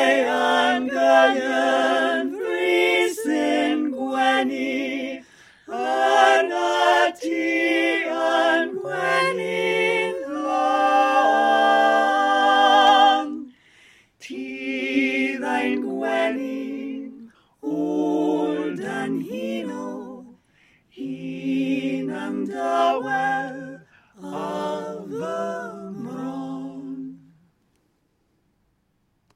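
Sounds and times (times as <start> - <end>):
tenor singing in a folk choir: 0.0 - 13.5, 14.2 - 27.4.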